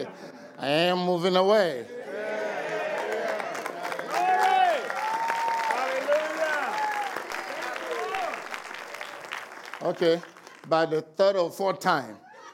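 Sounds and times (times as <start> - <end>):
speech: 0.1 - 2.0, 9.8 - 12.2
voices calling out and cheering: 2.0 - 8.7
audience applause: 2.1 - 11.0.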